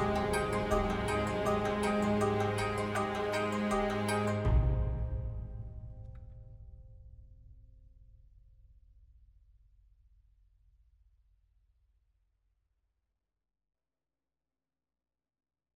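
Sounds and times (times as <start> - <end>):
music layer: 0.0 - 5.6.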